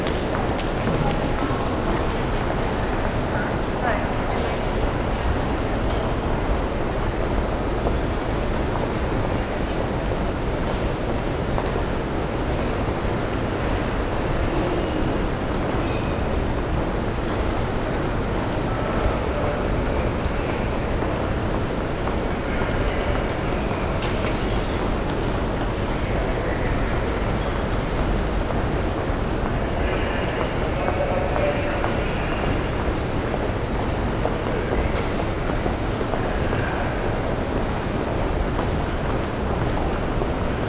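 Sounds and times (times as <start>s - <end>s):
railway station ambience: 0.0s - 40.6s.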